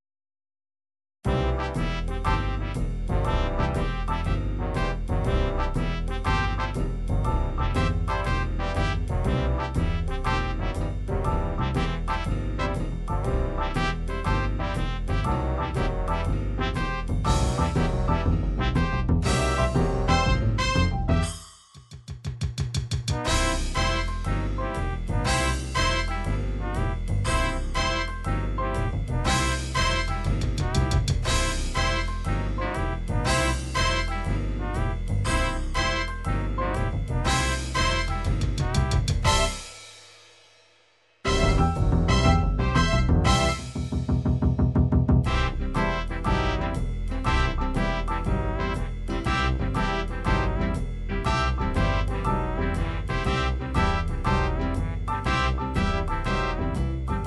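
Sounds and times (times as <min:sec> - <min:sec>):
MIDI jazz music: 0:01.3 - 0:21.5, 0:22.8 - 0:39.8, 0:41.2 - 0:57.2.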